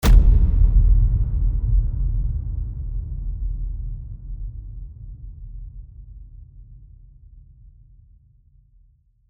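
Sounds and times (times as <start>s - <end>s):
epic low hit: 0.0s - 6.2s.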